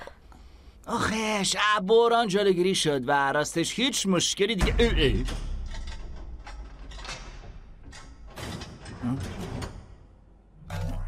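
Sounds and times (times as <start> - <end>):
speech: 0.9 - 5.5
hangar doors locking, sliding and clanking: 5.2 - 10.9.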